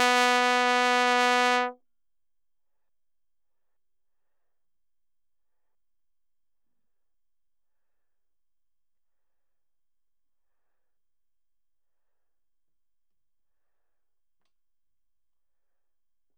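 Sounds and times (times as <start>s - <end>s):
bass trombone notes fortissimo from C3 to B3: 0.0s - 1.7s.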